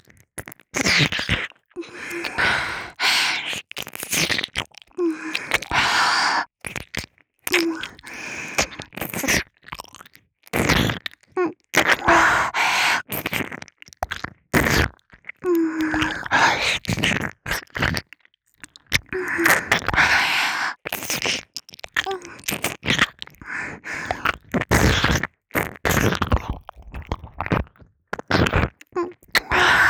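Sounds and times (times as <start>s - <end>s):
ASMR ear licking on the left ear: 0.4s - 29.8s.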